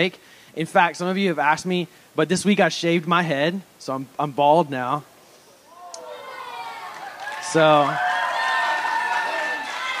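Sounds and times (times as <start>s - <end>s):
speech: 0.0s - 5.1s, 7.5s - 8.1s
audience cheering: 5.7s - 9.9s.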